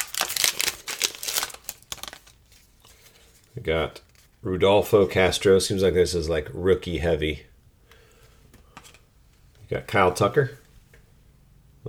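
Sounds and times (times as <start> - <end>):
wax pack of Panini Capstone baseball cards torn open: 0.0 - 2.8
speech: 3.6 - 7.5, 9.7 - 10.6.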